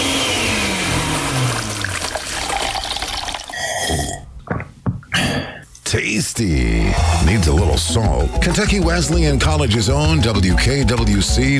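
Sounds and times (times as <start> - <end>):
kitchen blender whirring: 0.0 - 4.0
speech: 3.9 - 4.1, 5.9 - 11.5.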